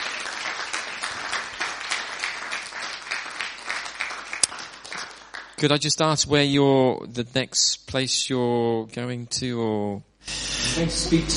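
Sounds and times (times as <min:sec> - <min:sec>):
audience applause: 0:00.0 - 0:05.6
speech: 0:05.6 - 0:10.1, 0:10.8 - 0:11.3.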